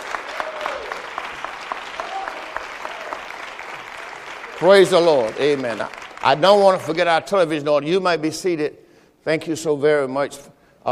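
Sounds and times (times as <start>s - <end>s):
church congregation applause during a morning service: 0.0s - 7.6s
speech: 4.6s - 10.9s.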